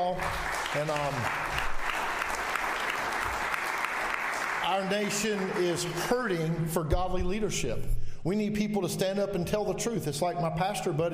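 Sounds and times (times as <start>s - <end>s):
speech: 0.0s - 1.6s, 4.7s - 11.1s
audience clapping for a pastor: 0.0s - 6.6s.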